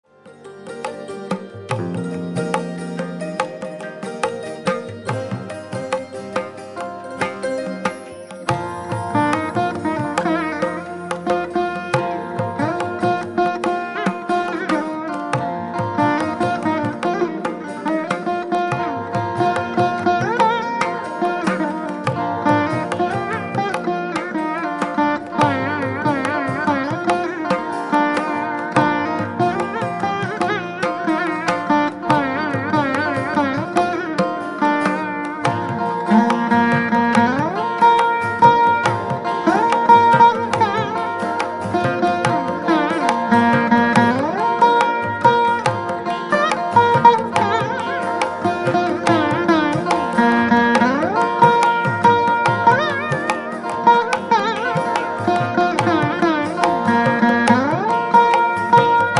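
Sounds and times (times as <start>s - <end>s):
veena fusion music: 0.0s - 59.1s.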